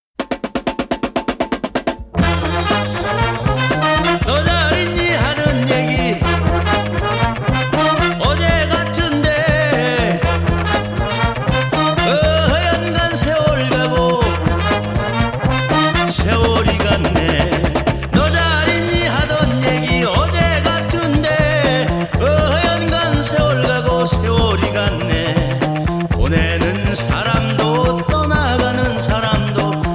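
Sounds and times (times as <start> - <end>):
funky Korean soul music: 1.3 - 29.9.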